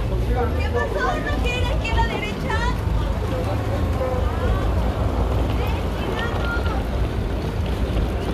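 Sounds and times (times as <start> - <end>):
crowd voices chattering in Times Square: 0.0 - 8.3
loud low roar of traffic in Times Square: 0.0 - 8.3.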